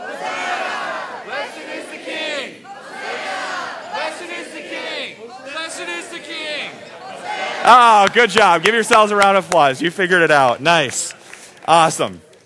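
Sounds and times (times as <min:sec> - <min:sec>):
crowd shouting call-and-response: 0:00.0 - 0:09.4
speech: 0:07.6 - 0:11.0, 0:11.7 - 0:12.3.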